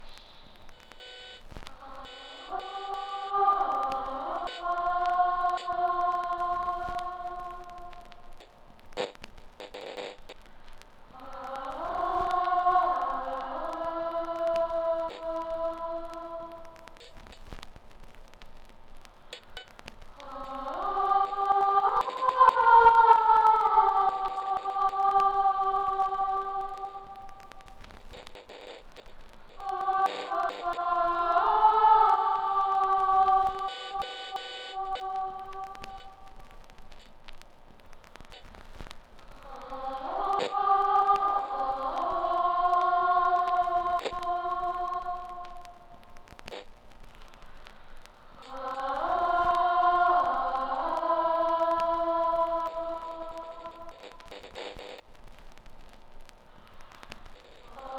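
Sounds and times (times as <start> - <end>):
choir singing: 1.7 - 8.2, 11.2 - 17.0, 20.2 - 27.4, 29.6 - 36.4, 39.4 - 46.0, 48.4 - 54.0, 57.7 - 57.9.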